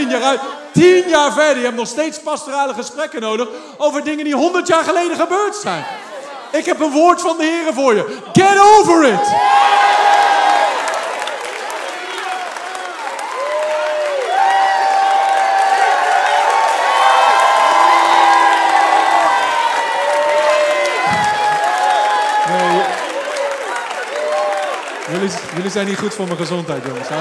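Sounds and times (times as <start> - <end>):
speech: 0.2 - 10.3, 25.2 - 27.1
audience cheering and applause: 8.5 - 27.1
whoops and shouting voices: 12.2 - 24.8.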